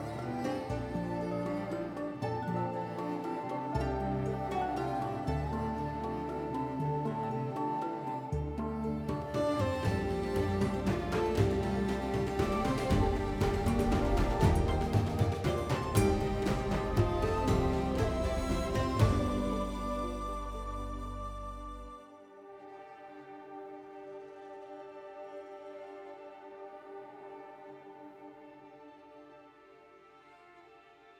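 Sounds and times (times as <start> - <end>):
romantic mood music loop: 0.0 - 22.0.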